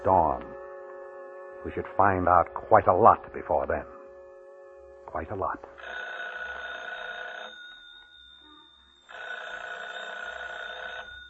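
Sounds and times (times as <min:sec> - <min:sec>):
speech: 0:01.6 - 0:04.0, 0:05.1 - 0:06.0
telephone ringing: 0:05.8 - 0:11.2.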